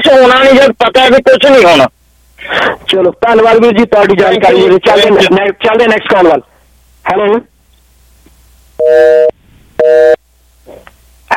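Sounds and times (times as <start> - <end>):
speech: 0.2 - 7.5, 8.8 - 11.3
phone busy tone after a dropped call: 8.8 - 10.2.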